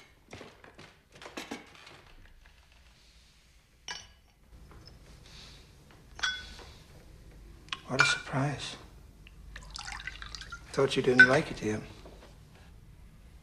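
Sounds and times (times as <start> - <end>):
glass clinking: 3.9 - 4.4, 6.2 - 6.6, 9.6 - 11.5
speech: 7.9 - 8.8, 10.8 - 12.0
brandy poured from decanter into glass: 9.6 - 10.7.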